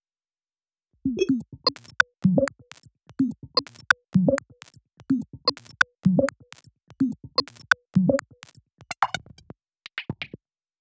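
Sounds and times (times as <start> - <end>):
minimal house sequences: 1.2 - 9.4.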